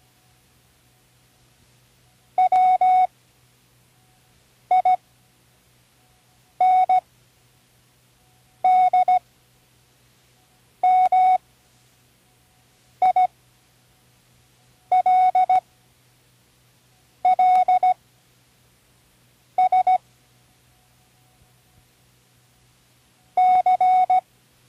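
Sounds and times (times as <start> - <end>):
Morse code spelling words: 2.4 - 3.1, 4.7 - 5.0, 6.6 - 7.0, 8.6 - 9.2, 10.8 - 11.4, 13.0 - 13.3, 14.9 - 15.6, 17.2 - 18.0, 19.6 - 20.0, 23.4 - 24.2.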